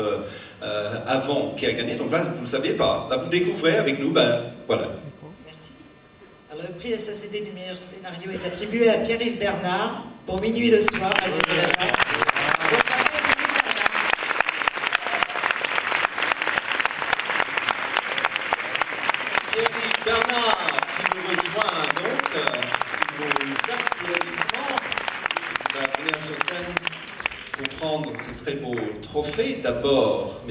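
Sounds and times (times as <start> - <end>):
speech: 0.0 - 5.1, 6.8 - 12.0, 28.2 - 30.4
audience applause at award ceremony: 10.9 - 29.4.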